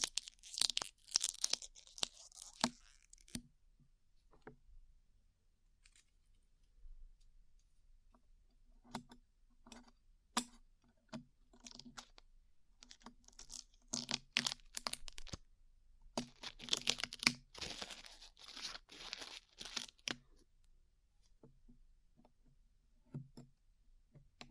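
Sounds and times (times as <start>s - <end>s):
glue being peeled off the ears, sticky tearing and crinkling: 0.0s - 3.4s, 12.8s - 15.4s, 16.2s - 20.2s.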